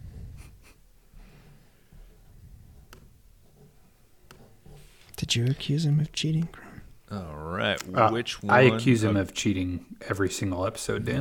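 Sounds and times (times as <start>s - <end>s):
pen scratching on paper writing a grid and game score: 2.1s - 5.1s
speech: 5.3s - 11.1s.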